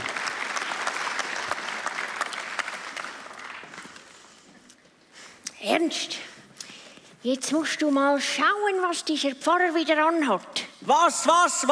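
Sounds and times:
audience applause: 0.0s - 4.0s
speech: 5.6s - 6.3s, 7.2s - 11.7s.

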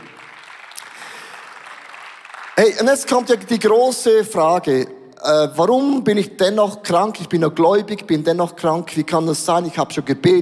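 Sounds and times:
audience applause: 0.0s - 3.0s
speech: 2.6s - 10.4s.

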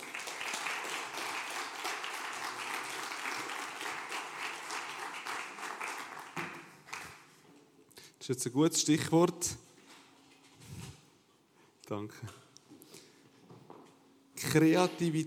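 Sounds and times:
audience applause: 0.0s - 7.2s
speech: 8.3s - 9.6s, 11.9s - 12.4s, 14.5s - 15.2s.

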